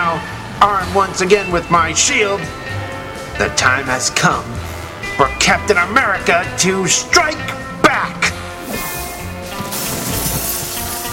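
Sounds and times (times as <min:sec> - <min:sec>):
speech: 0:00.2 - 0:02.8, 0:03.4 - 0:08.2
plexiglass window smashing: 0:08.7 - 0:11.1.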